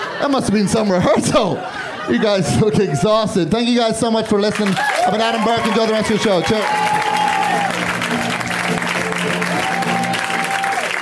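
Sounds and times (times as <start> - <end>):
laughter: 0.0 - 3.2
speech: 0.2 - 7.4
audience applause: 4.5 - 11.0.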